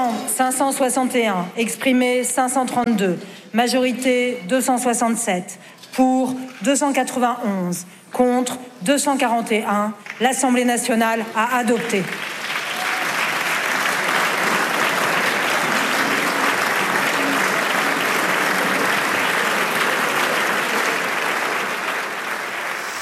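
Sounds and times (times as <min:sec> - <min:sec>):
speech: 0:00.4 - 0:12.4
applause in parliament: 0:10.0 - 0:10.4, 0:11.6 - 0:23.0.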